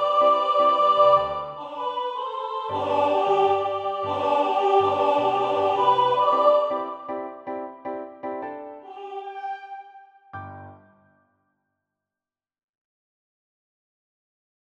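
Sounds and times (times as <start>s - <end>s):
soprano singing: 0.0s - 7.8s, 8.6s - 10.8s.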